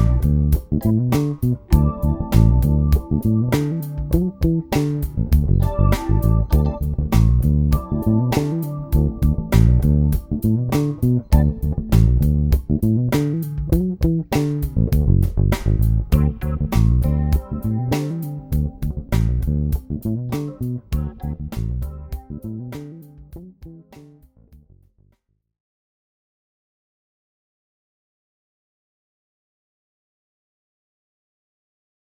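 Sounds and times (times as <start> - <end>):
1970s R&B music: 0.0 - 24.4
bass: 0.0 - 25.4.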